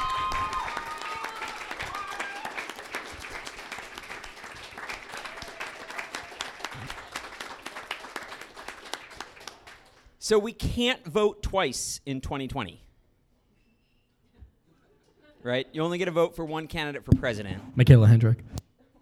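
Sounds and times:
audience applause: 0.0s - 10.0s
speech: 10.3s - 12.8s, 15.4s - 18.6s.

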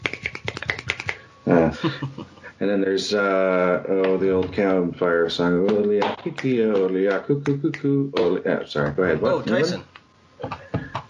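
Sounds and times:
finger snapping: 0.0s - 1.2s
speech: 1.5s - 10.6s.

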